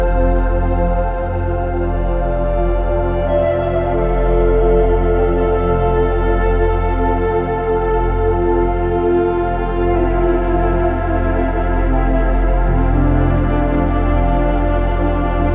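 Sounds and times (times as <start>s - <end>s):
soft soothing background music with nature sounds: 0.0s - 15.5s.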